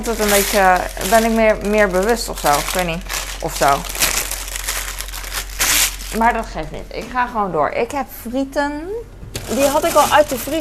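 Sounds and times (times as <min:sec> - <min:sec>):
speech: 0:00.0 - 0:04.0, 0:06.1 - 0:10.5
baking paper crumpling: 0:00.0 - 0:06.6, 0:09.3 - 0:10.5.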